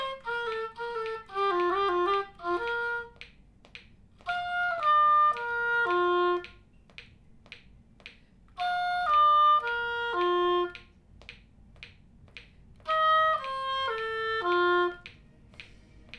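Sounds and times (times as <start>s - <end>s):
oboe: 0.0s - 3.3s, 4.2s - 6.7s, 8.6s - 11.0s, 12.8s - 16.1s.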